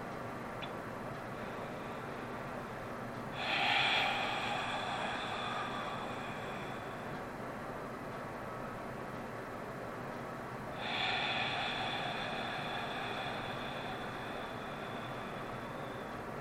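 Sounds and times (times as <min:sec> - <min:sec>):
steady low noise: 0:00.0 - 0:16.3
long slow deep inhale through the nose during a guided group meditation: 0:03.3 - 0:07.2, 0:10.8 - 0:16.3.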